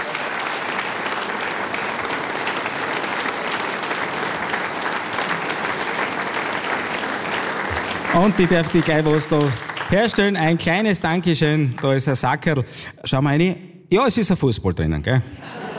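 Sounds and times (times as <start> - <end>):
crowd applause: 0.0 - 12.1
speech: 8.2 - 15.6
laughter: 15.2 - 15.7.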